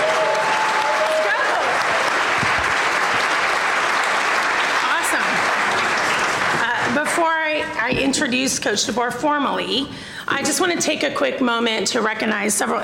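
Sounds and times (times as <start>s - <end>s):
crowd applause: 0.0s - 7.0s
speech: 8.2s - 12.8s.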